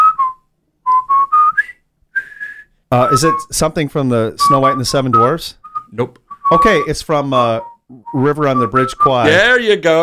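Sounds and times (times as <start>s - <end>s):
person whistling a march: 0.0s - 3.5s, 4.4s - 7.0s, 7.6s - 9.4s
speech: 2.9s - 10.0s.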